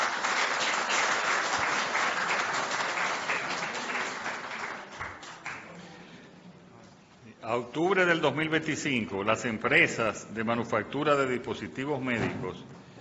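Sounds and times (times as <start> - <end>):
audience applause: 0.0 - 5.8
speech: 7.5 - 12.8.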